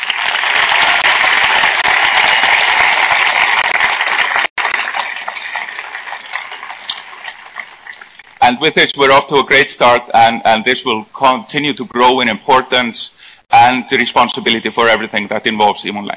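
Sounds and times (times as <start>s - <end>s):
audience applause: 0.0s - 8.2s
speech: 8.5s - 16.1s.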